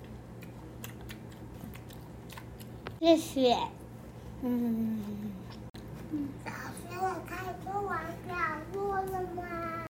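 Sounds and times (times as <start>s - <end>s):
teacher chewing food quickly: 0.0s - 3.0s
low steady hum: 0.0s - 9.9s
speech: 3.0s - 3.8s, 4.4s - 5.2s.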